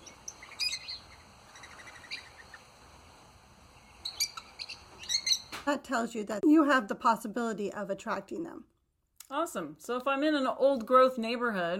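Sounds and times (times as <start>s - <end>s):
parrot chatter: 0.0s - 2.8s, 3.8s - 5.6s
speech: 5.7s - 8.7s, 9.3s - 11.7s.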